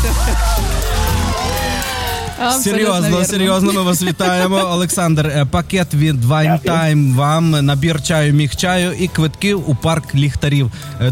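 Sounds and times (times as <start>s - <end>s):
applause: 0.0s - 3.2s
laughter: 0.0s - 5.3s
speech: 2.4s - 11.0s.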